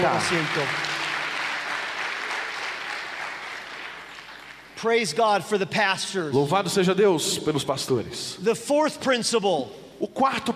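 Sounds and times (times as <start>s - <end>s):
speech: 0.0s - 1.0s, 4.8s - 10.5s
audience applause: 0.0s - 4.8s.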